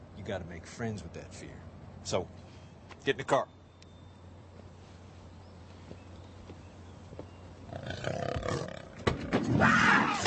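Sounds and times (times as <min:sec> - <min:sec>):
speech: 0:00.3 - 0:03.6
cougar roaring inside a car: 0:07.7 - 0:10.2.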